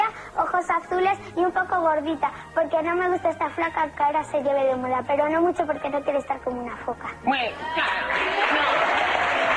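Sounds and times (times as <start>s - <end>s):
speech: 0.1s - 8.8s
applause from a crowd of adults: 7.6s - 9.5s.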